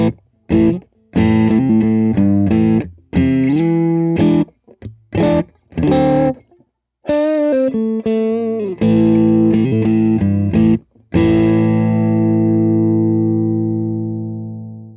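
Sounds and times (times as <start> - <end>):
distorted electric guitar switching from bridge to neck pickup: 0.0 - 6.4, 7.1 - 14.9.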